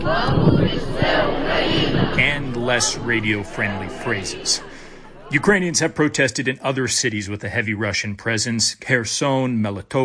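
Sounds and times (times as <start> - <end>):
crowd of protesters chanting a slogan: 0.0 - 6.5
speech: 2.2 - 10.0.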